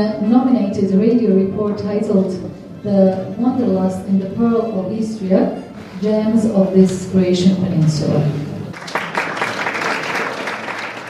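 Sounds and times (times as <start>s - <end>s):
speech: 0.0s - 8.4s
audience applause at award ceremony: 8.7s - 11.0s.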